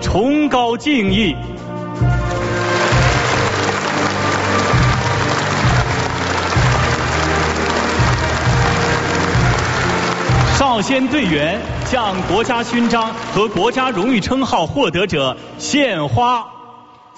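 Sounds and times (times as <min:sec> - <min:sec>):
speech: 0:00.2 - 0:02.2, 0:10.6 - 0:16.6
large crowd applauding: 0:02.2 - 0:14.3.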